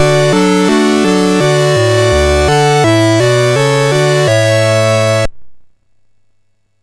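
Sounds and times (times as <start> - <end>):
MOS6581R4 SID chip music: 0.0 - 5.3.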